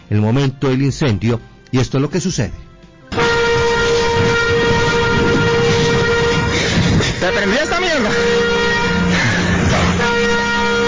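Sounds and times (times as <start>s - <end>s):
speech: 0.1s - 2.7s
emergency alarm at industrial plant in Gibraltar: 3.1s - 10.8s.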